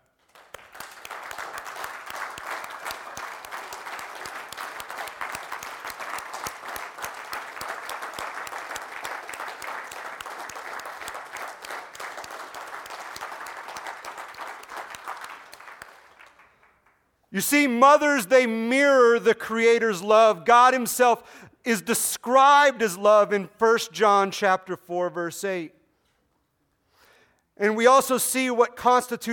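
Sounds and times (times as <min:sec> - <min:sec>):
audience applause: 0:00.1 - 0:17.0
speech: 0:17.4 - 0:25.8, 0:27.6 - 0:29.3.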